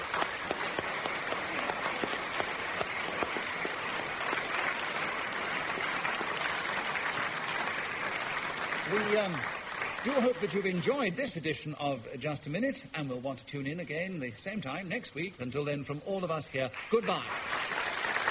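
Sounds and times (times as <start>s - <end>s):
studio audience at a radio panel game applauding the winner: 0.0s - 11.2s, 16.7s - 18.2s
speech: 9.0s - 17.5s.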